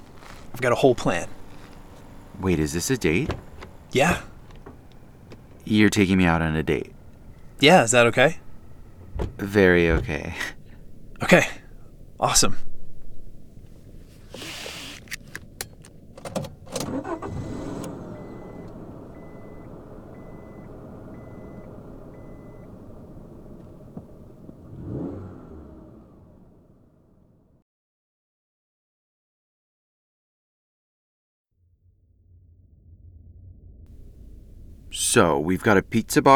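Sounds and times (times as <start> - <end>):
car engine and road rumble while driving: 0.0 - 27.6, 31.7 - 36.3
speech: 0.6 - 1.4, 2.4 - 4.3, 5.7 - 6.9, 7.6 - 8.4, 9.2 - 10.6, 11.2 - 11.6, 12.2 - 12.7, 35.1 - 36.3
faint repeating beep: 18.2 - 22.7.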